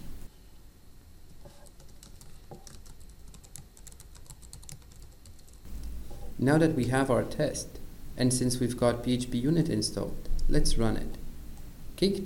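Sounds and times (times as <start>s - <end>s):
computer keyboard typing: 1.7s - 5.7s
low hum: 5.7s - 12.0s
speech: 6.4s - 11.2s, 12.0s - 12.2s.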